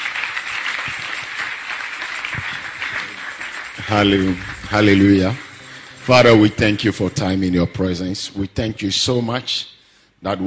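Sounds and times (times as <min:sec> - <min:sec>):
audience clapping: 0:00.0 - 0:07.5
speech: 0:03.9 - 0:05.4, 0:06.1 - 0:10.4.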